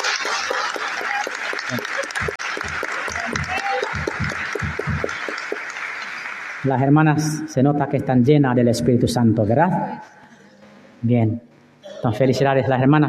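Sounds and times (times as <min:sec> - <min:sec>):
audience applause: 0:00.0 - 0:07.0
speech: 0:06.6 - 0:10.1, 0:11.0 - 0:13.0.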